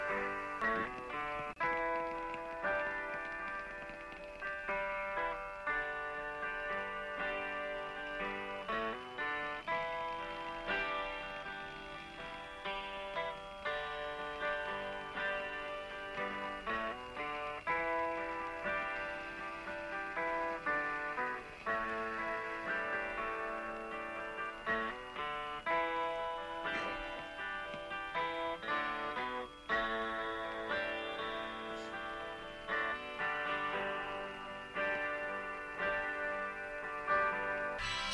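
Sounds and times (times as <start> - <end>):
intro solo backing track: 0.0 - 38.1.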